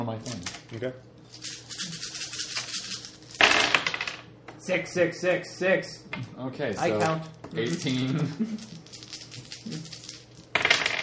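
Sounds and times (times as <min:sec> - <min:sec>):
speech: 0:00.2 - 0:01.5, 0:04.7 - 0:08.8, 0:09.7 - 0:10.0
dice being shaken: 0:01.3 - 0:04.2, 0:08.6 - 0:11.0
dice tumbling and bouncing across a hard tabletop: 0:02.4 - 0:04.2, 0:08.6 - 0:11.0.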